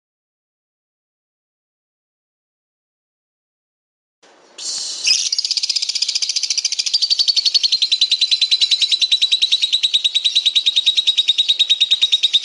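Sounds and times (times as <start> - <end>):
pet lovebird trilling song: 4.6 - 12.4.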